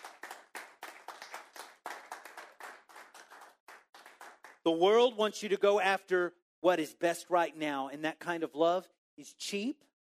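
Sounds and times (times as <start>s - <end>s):
audience clapping hands: 0.0s - 4.8s
speech: 4.6s - 9.9s.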